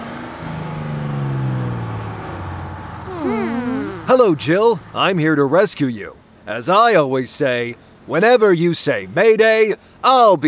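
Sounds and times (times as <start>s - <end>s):
cartoon vehicle engine driving through streets to a construction site: 3.1s - 5.2s
speech: 4.1s - 10.4s.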